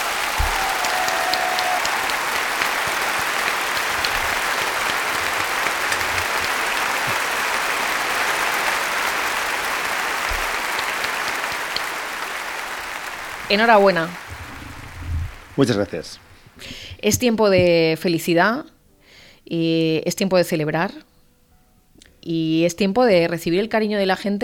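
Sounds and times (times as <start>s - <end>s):
audience applause: 0.0s - 17.0s
speech: 13.5s - 14.2s, 15.6s - 18.7s, 19.4s - 21.1s, 22.3s - 24.4s.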